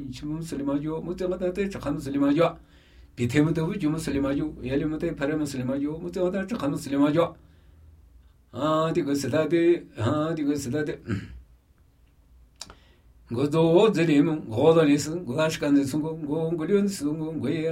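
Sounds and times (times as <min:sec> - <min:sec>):
Namuyi Tibetan ritual chanting: 0:00.0 - 0:02.6, 0:03.2 - 0:07.4, 0:08.5 - 0:11.2, 0:13.3 - 0:17.6.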